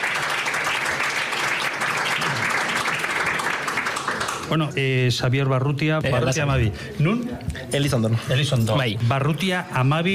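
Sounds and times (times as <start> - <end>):
audience applause: 0.0 - 4.6
speech: 4.5 - 10.1.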